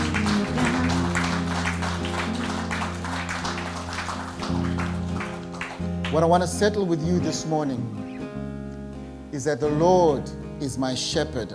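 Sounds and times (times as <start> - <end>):
audience applause: 0.0 - 6.3
speech: 6.1 - 8.1, 9.4 - 11.5.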